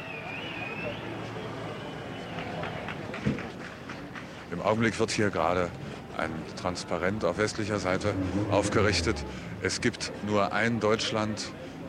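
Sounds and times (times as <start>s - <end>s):
shrill whistle blown at a changing of the guard: 0.0s - 1.1s
crowd murmur: 0.0s - 11.8s
speech: 4.6s - 11.7s.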